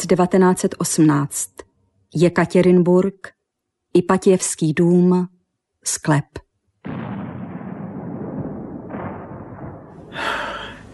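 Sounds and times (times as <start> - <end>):
speech: 0.0 - 6.4
distant artillery cannon fire: 6.8 - 10.2.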